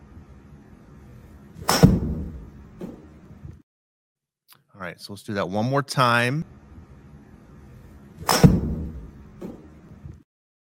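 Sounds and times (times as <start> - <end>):
recorded golf club swing whoosh: 1.6 - 3.1, 8.2 - 9.2
speech: 4.8 - 6.6.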